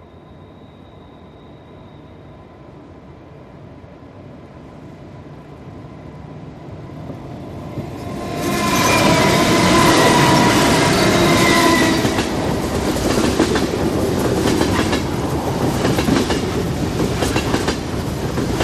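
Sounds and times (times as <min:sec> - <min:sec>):
fast train passing by: 0:00.0 - 0:18.6
train horn: 0:08.4 - 0:12.6.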